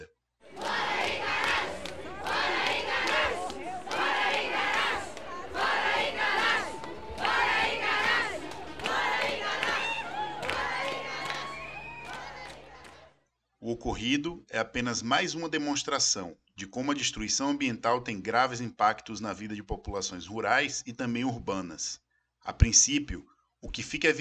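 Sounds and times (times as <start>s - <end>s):
protest crowd chanting: 0.0s - 13.2s
speech: 14.0s - 24.2s.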